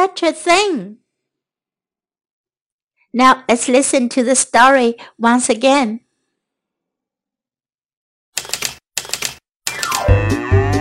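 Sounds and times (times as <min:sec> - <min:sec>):
speech: 0:00.1 - 0:01.0, 0:03.1 - 0:06.0
typewriter typing: 0:08.4 - 0:10.1.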